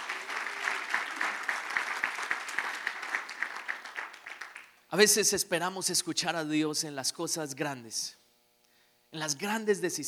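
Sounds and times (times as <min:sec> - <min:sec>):
audience applause: 0:00.0 - 0:04.8
speech: 0:04.9 - 0:08.2, 0:09.1 - 0:10.0.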